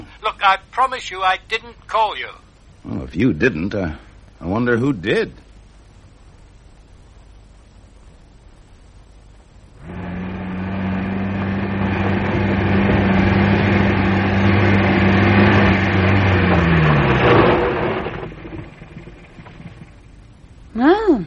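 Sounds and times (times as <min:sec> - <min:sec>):
speech: 0:00.2 - 0:05.5
car engine running: 0:09.8 - 0:20.1.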